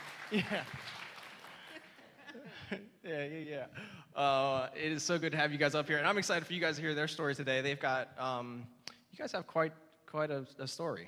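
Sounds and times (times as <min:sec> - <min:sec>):
audience applause: 0:00.0 - 0:02.0
laughter: 0:00.2 - 0:03.8
speech: 0:00.3 - 0:00.9, 0:02.7 - 0:11.0.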